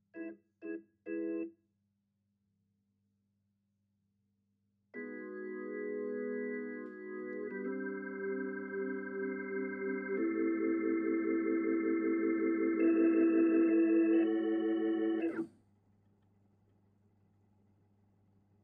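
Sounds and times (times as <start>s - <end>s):
Hammond organ: 0.0s - 1.5s, 5.0s - 15.4s.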